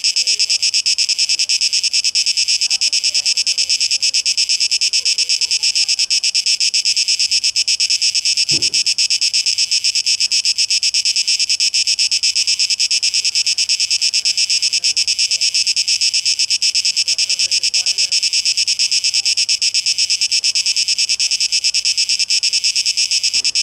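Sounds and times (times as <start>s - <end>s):
cicada chorus buzzing: 0.0s - 23.6s
short knock: 8.5s - 8.9s.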